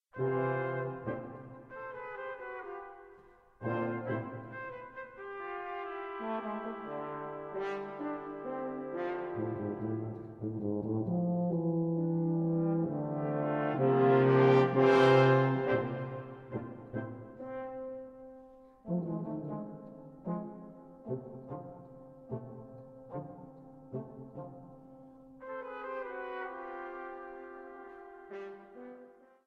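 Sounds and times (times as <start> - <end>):
five brass: 0.1 - 29.4.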